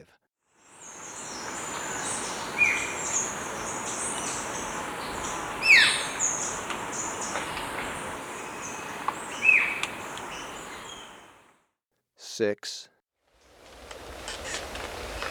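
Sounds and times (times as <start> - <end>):
Olive-backed Woodcreeper in S. America: 0.7 - 11.5, 13.5 - 15.3.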